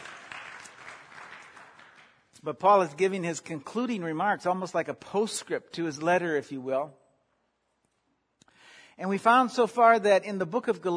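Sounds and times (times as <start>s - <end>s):
applause: 0.0s - 2.4s
speech: 2.4s - 7.0s, 9.0s - 10.9s.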